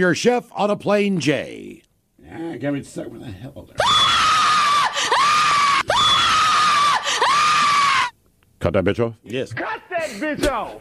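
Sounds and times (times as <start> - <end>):
speech: 0.0 - 4.2, 8.6 - 10.7
woman screaming hysterically: 3.8 - 8.1.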